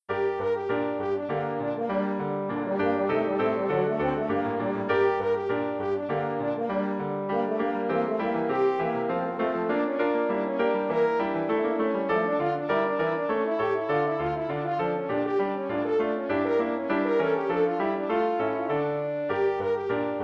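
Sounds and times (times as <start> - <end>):
French horn: 0.1 - 20.2.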